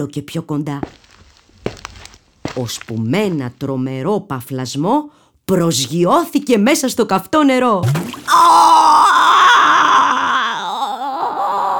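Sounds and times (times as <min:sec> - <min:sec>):
speech: 0:00.0 - 0:01.0, 0:02.6 - 0:08.8
wolf howling in pain: 0:08.3 - 0:11.7.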